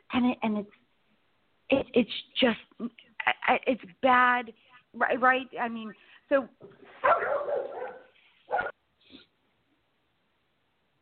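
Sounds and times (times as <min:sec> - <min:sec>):
speech: 0:00.1 - 0:00.8, 0:01.7 - 0:07.7
dogs barking: 0:07.0 - 0:08.8.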